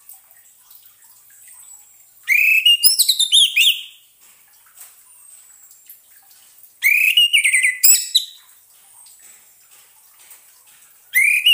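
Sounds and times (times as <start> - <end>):
orange-headed thrush song of whistled and chirping notes: 2.3 - 4.0, 6.8 - 8.4, 11.2 - 11.5.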